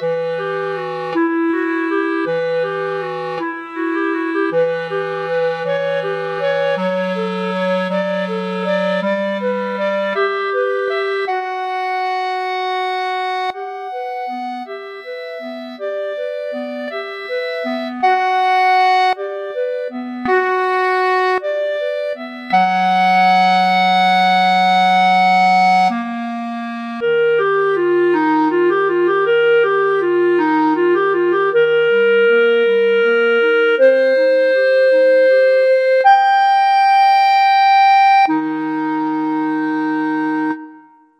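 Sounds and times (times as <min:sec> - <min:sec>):
clarinet duet: 0:00.0 - 0:41.1.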